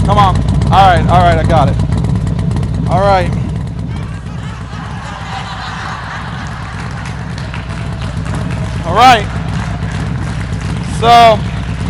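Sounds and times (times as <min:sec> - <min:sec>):
motorcycle engine idling and revving on stage: 0:00.0 - 0:11.8
laughter: 0:03.9 - 0:10.8
speech: 0:09.0 - 0:09.4, 0:11.0 - 0:11.5.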